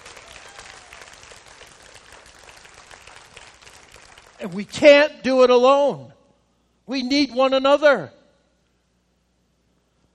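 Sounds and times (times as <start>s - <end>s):
audience clapping: 0.0s - 4.7s
speech: 4.4s - 6.2s, 6.9s - 8.2s.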